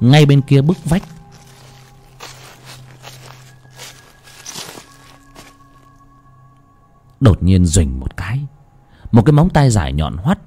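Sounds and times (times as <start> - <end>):
speech: 0.0 - 1.2, 7.2 - 10.4
footsteps rustling on dry leaves around a house: 0.3 - 6.0.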